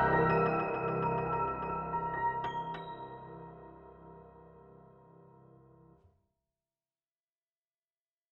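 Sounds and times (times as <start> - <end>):
modern far west piano music: 0.0 - 5.8.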